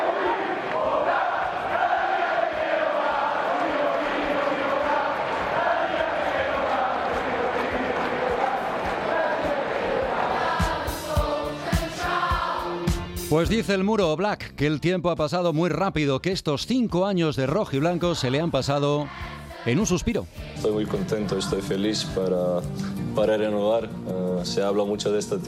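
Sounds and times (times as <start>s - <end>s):
large stadium crowd cheering and chanting in a standing ovation: 0.0s - 13.2s, 17.5s - 22.2s
stadium crowd applause: 0.2s - 10.4s
speech: 13.3s - 25.4s.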